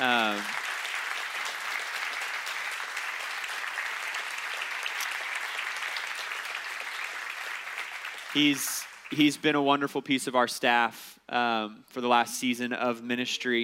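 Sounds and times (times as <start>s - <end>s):
audience applause: 0.0s - 9.4s
speech: 8.4s - 13.6s.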